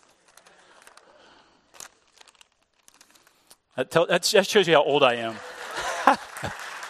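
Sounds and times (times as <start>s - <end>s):
paper map being folded quickly by hand: 0.0s - 1.1s, 1.7s - 3.5s
speech: 3.8s - 5.5s
laughter: 5.3s - 6.8s.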